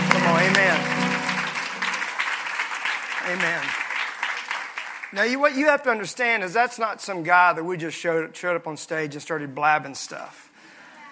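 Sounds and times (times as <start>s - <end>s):
audience applause: 0.0s - 5.2s
speech: 3.3s - 3.8s, 5.1s - 10.5s.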